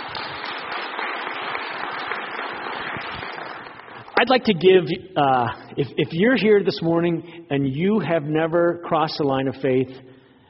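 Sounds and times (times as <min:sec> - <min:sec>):
audience applause: 0:00.0 - 0:04.3
speech: 0:04.2 - 0:10.1.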